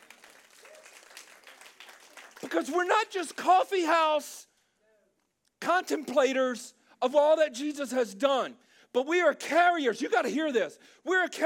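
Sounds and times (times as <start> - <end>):
audience clapping: 0.0 - 3.8
speech: 2.4 - 4.4, 5.6 - 11.4.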